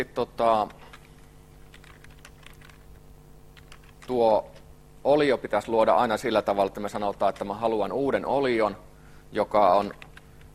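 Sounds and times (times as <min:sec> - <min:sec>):
speech: 0:00.0 - 0:00.8, 0:04.1 - 0:10.0
steady low hum: 0:00.0 - 0:10.5
faint typing on a computer keyboard: 0:00.9 - 0:03.0, 0:03.6 - 0:04.2, 0:09.8 - 0:10.2.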